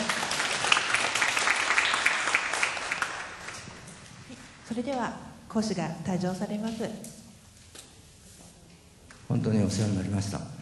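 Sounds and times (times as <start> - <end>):
audience applause: 0.0 - 3.6
speech: 4.7 - 7.2, 9.4 - 10.6.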